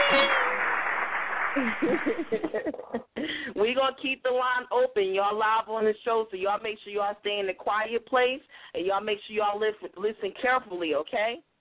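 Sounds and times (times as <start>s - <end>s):
applause: 0.0s - 2.6s
laughter: 1.4s - 3.4s
speech: 1.6s - 11.5s.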